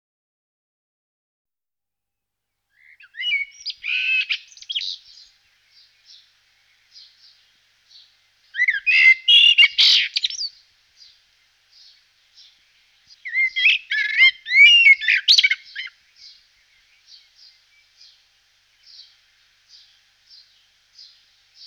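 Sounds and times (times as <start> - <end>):
common blackbird singing: 2.8 - 21.6.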